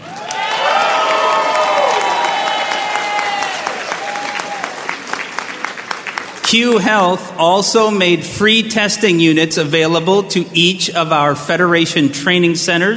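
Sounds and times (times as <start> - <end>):
crowd cheering loudly with whoops and shouts: 0.0 - 6.4
clapping: 0.0 - 6.5
speech: 6.5 - 12.9.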